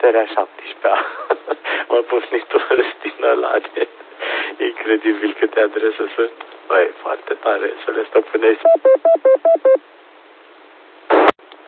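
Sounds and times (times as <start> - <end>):
speech: 0.0 - 10.0
loud beeping from the station: 8.6 - 9.8.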